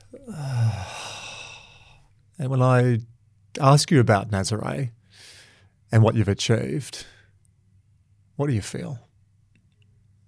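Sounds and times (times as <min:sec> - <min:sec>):
slow exhale: 0:00.0 - 0:02.1
speech: 0:00.1 - 0:00.9, 0:02.4 - 0:05.3, 0:05.9 - 0:07.1, 0:08.4 - 0:09.1.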